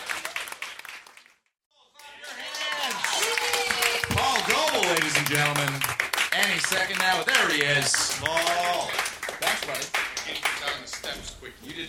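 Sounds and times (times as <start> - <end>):
audience round of applause: 0.0 - 1.3, 2.1 - 11.0
people cheering: 1.9 - 9.8
speech: 5.3 - 11.8.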